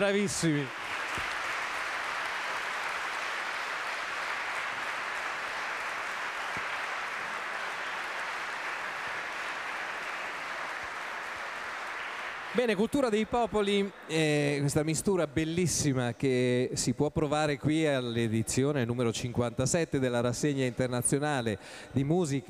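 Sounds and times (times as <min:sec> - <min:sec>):
speech: 0:00.0 - 0:01.3, 0:12.6 - 0:22.4
audience applause after choir performance: 0:00.0 - 0:15.1.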